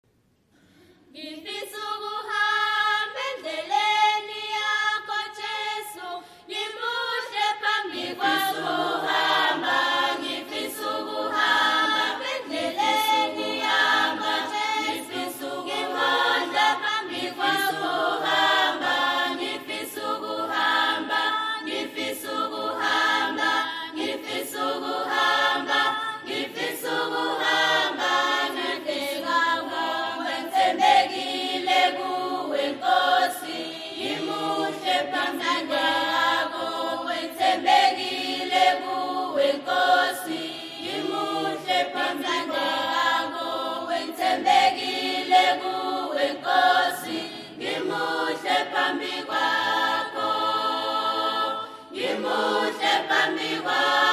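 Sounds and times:
choir singing: 1.1s - 54.1s.

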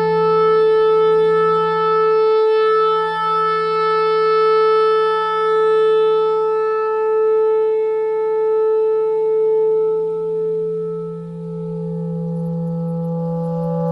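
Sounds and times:
clarinet notes: 0.0s - 13.9s
noise: 0.0s - 13.9s.

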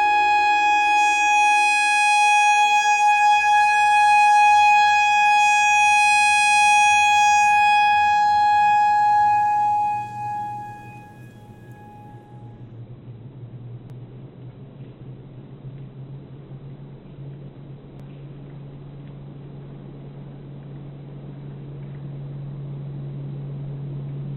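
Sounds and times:
clarinet notes: 0.0s - 12.6s.

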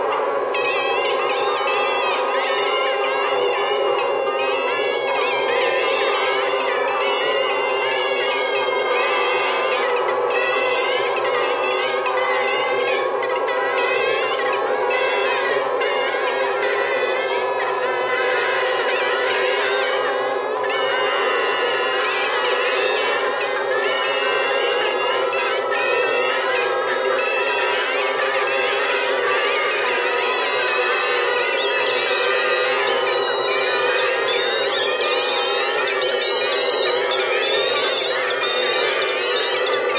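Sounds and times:
bagpipe: 0.0s - 39.9s.

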